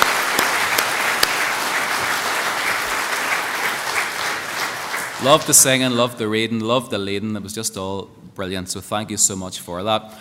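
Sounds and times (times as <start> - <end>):
round of applause from a crowd: 0.0 - 6.1
speech: 5.2 - 10.1.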